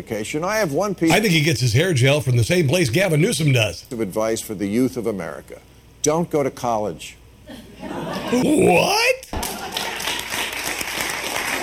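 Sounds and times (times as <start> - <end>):
speech: 0.0 - 9.2
laughter: 7.5 - 8.7
audience applause: 9.4 - 11.6.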